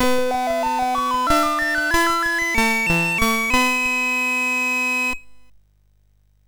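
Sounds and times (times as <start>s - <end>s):
MOS6581R3 chip buzz: 0.0s - 5.5s.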